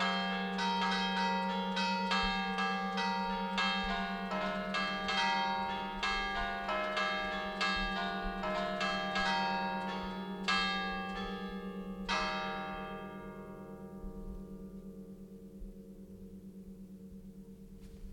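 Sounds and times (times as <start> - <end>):
church bells ringing in Molassana alta, Genova, Liguria: 0.0 - 18.1.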